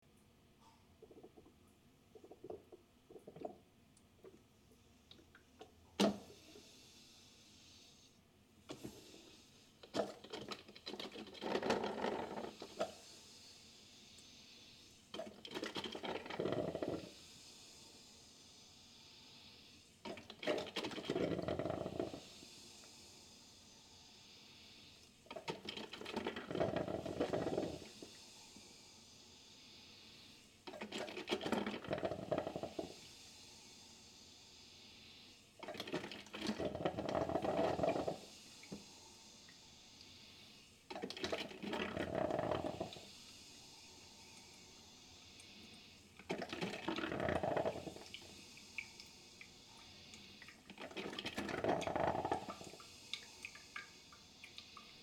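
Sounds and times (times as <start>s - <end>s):
drip coffee maker: 0.6s - 4.5s, 5.1s - 6.7s, 8.7s - 13.2s, 15.1s - 17.2s, 20.0s - 23.0s, 25.0s - 28.7s, 30.6s - 33.0s, 35.6s - 40.1s, 40.9s - 43.1s, 44.0s - 55.0s.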